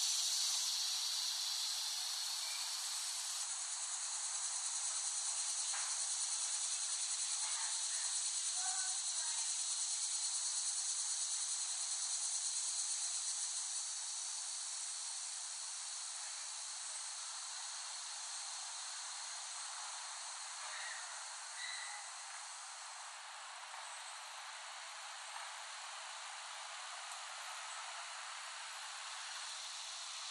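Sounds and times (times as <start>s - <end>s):
faint chirps: 0.0s - 3.5s, 20.5s - 22.5s
cicadas buzzing: 0.0s - 30.2s.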